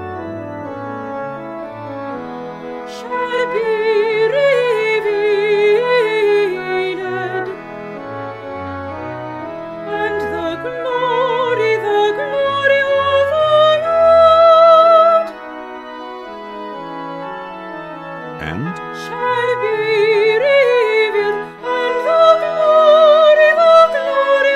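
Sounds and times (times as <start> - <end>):
soprano singing: 2.8 - 8.2, 9.8 - 16.4, 18.3 - 24.5.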